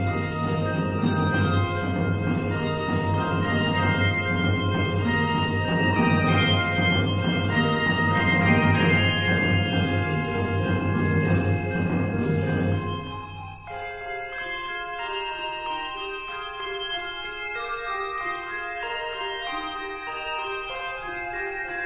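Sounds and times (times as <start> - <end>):
4-5 octave handbells ringing: 0.0 - 21.8.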